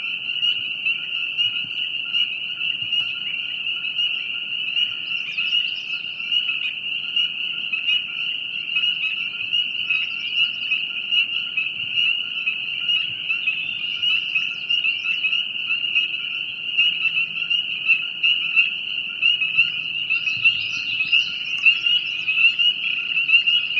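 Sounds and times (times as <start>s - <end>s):
peeper frogs at night: 0.0s - 23.7s.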